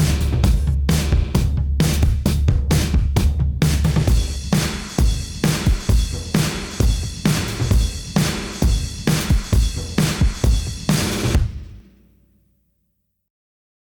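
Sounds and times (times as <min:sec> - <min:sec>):
dry drum loop: 0:00.0 - 0:11.8.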